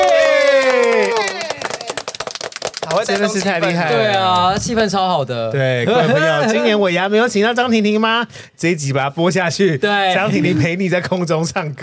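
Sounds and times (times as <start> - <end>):
applause: 0.0 - 3.9
speech: 3.0 - 11.8.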